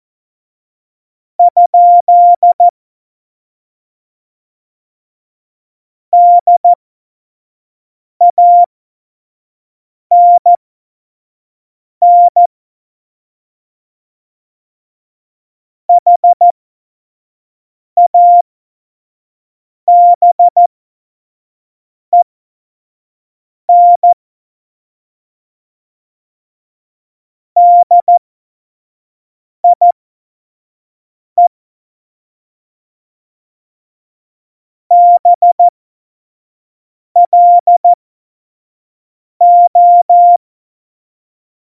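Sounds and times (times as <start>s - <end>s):
CW Morse code at tempo 70: 1.4s - 2.7s, 6.2s - 6.8s, 8.3s - 8.7s, 10.1s - 10.5s, 12.0s - 12.5s, 16.0s - 16.4s, 18.0s - 18.4s, 19.9s - 20.7s, 23.7s - 24.2s, 27.6s - 28.2s, 29.6s - 29.8s, 34.9s - 35.7s, 37.2s - 38.0s, 39.4s - 40.4s.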